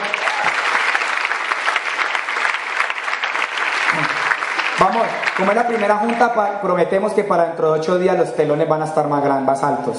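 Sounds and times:
audience applause: 0.0s - 6.7s
speech: 4.8s - 9.9s.

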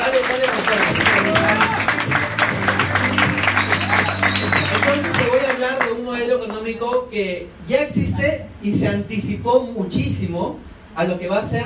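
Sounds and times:
crowd clapping: 0.0s - 7.0s
speech: 7.2s - 11.6s.

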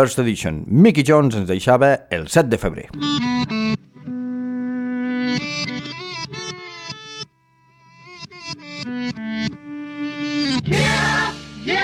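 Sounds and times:
speech: 0.0s - 3.5s
heavily distorted effects-laden electric guitar in psychedelic rock: 3.0s - 11.7s.

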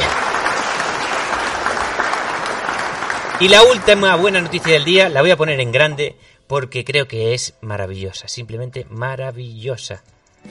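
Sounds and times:
audience applause: 0.0s - 5.3s
speech: 3.4s - 10.4s.

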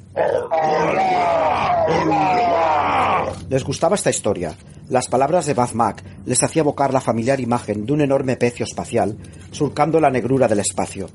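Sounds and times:
orcs shouting in chorus: 0.2s - 3.4s
speech: 3.5s - 11.1s.

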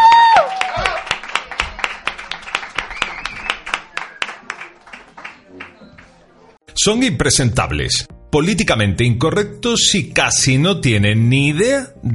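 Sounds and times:
audience applause: 0.0s - 6.4s
speech: 6.8s - 12.1s.

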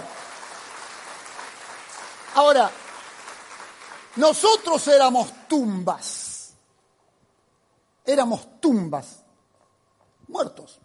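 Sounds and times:
audience applause: 0.0s - 5.0s
speech: 2.4s - 2.8s, 4.2s - 6.2s, 8.1s - 9.2s, 10.3s - 10.8s.

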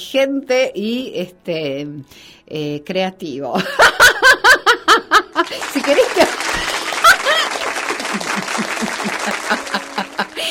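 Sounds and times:
speech: 0.1s - 4.7s, 5.4s - 6.7s
laughter: 3.6s - 10.4s
applause sound effect: 5.4s - 10.4s.

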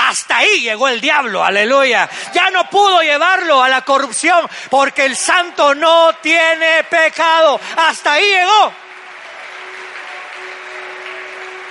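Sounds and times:
speech: 0.1s - 8.8s
audience applause: 7.8s - 11.6s.

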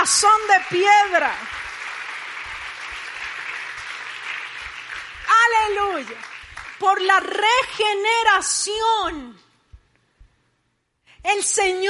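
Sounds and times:
speech: 0.0s - 1.6s, 5.4s - 9.4s, 11.2s - 11.8s
audience applauding: 0.0s - 7.4s.

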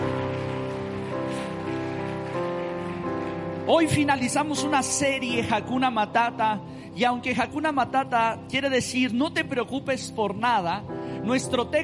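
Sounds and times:
audience applauding: 0.0s - 5.0s
sustained keyboard chords: 0.0s - 11.8s
speech: 3.7s - 11.8s.

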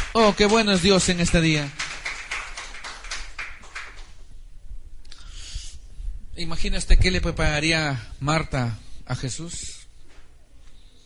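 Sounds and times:
audience applause: 0.0s - 4.1s
speech: 0.2s - 1.8s, 6.4s - 9.8s.

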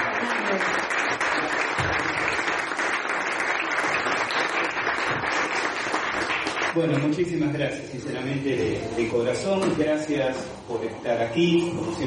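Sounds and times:
audience applause: 0.0s - 7.0s
speech: 0.2s - 0.8s, 6.8s - 12.0s.

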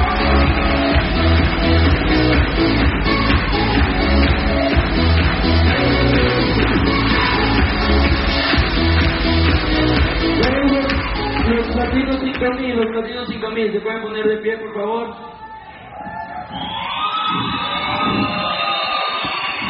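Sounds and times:
audience applause: 0.0s - 12.3s, 16.5s - 19.6s
speech: 13.0s - 15.3s.

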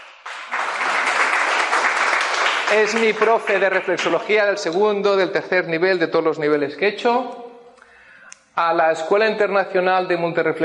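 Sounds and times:
audience applause: 0.0s - 4.3s
speech: 2.7s - 7.4s, 8.6s - 10.6s.

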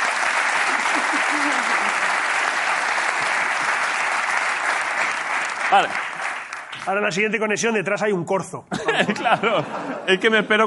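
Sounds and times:
audience applause: 0.0s - 7.1s
laughter: 0.6s - 2.4s, 8.7s - 10.6s
speech: 5.7s - 6.1s, 6.8s - 10.6s.

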